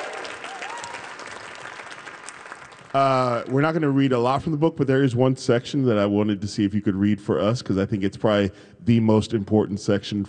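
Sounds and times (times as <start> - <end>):
audience applause for a new fiction book: 0.0 - 3.6
speech: 2.9 - 10.2.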